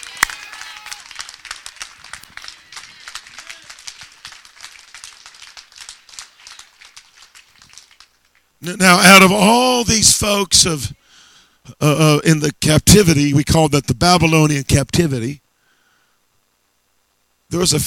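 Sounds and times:
audience clapping: 0.0 - 8.5
speech: 8.6 - 11.0, 11.7 - 15.4, 17.5 - 17.8.

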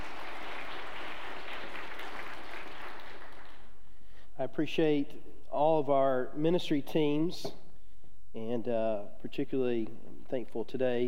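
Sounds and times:
audience applause: 0.0 - 3.6
speech: 4.4 - 7.6, 8.4 - 11.0.

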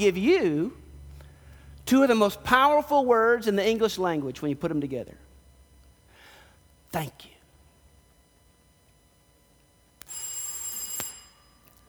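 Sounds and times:
speech: 0.0 - 0.8, 1.9 - 5.2, 6.9 - 7.3
bell ringing: 10.0 - 11.8.

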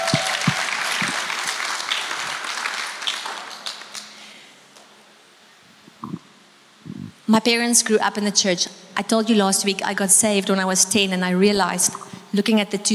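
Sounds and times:
audience hand clapping applause: 0.0 - 4.3
speech: 7.3 - 12.9.

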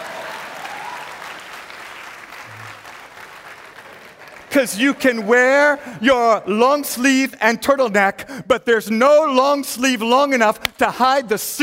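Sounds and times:
audience clapping: 0.0 - 6.3
speech: 4.6 - 11.6.

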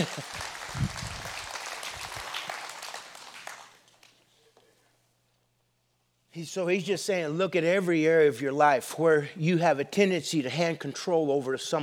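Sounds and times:
speech: 0.0 - 0.9, 6.4 - 11.8
crowd applauding: 0.0 - 4.2.

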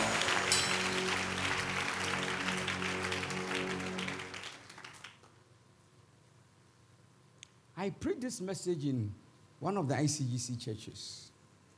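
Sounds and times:
sustained keyboard or organ chords: 0.0 - 4.4
crowd clapping: 0.0 - 5.4
speech: 7.8 - 11.3.

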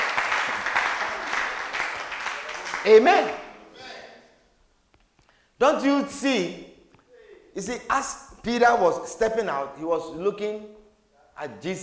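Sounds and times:
crowd clapping: 0.0 - 3.6
speech: 2.8 - 3.4, 5.6 - 6.7, 7.6 - 10.8, 11.4 - 11.8.

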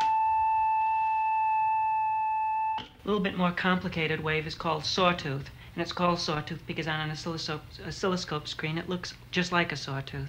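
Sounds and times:
electronic sine wave tone: 0.0 - 3.0
speech: 3.0 - 10.2.

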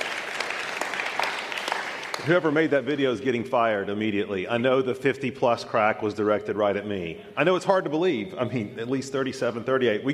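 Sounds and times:
audience applause: 0.0 - 2.7
speech: 2.2 - 10.1.

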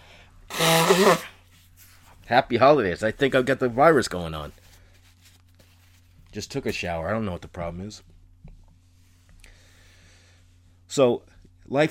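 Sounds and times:
person blowing nose: 0.5 - 1.4
speech: 0.9 - 1.3, 2.3 - 4.6, 6.3 - 8.1, 10.9 - 11.9.

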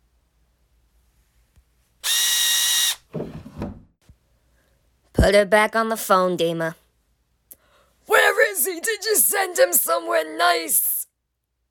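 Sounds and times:
power tool tightening a wheel nut: 2.0 - 3.1
speech: 5.2 - 6.8, 8.6 - 11.0.

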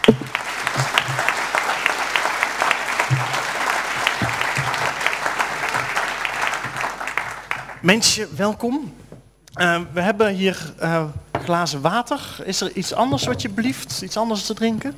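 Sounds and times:
audience applause welcoming a guest: 0.0 - 7.8
speech: 7.8 - 9.0, 9.6 - 14.9.

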